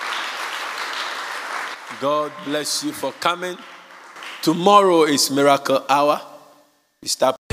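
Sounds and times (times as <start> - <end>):
audience clapping: 0.0 - 5.2
speech: 1.9 - 3.8, 4.4 - 6.3, 7.0 - 7.4.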